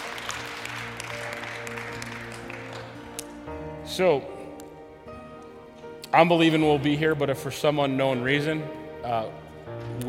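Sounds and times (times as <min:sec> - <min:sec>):
audience hand clapping: 0:00.0 - 0:03.5
speech: 0:04.0 - 0:04.4, 0:06.1 - 0:10.0.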